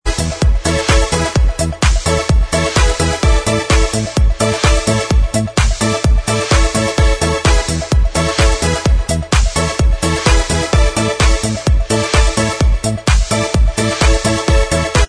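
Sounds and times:
instrumental backing track remix: 0:00.0 - 0:15.0.

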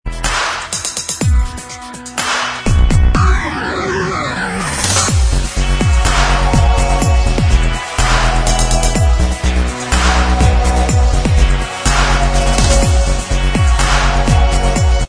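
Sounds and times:
dubstep remix instrumental: 0:00.1 - 0:15.0.

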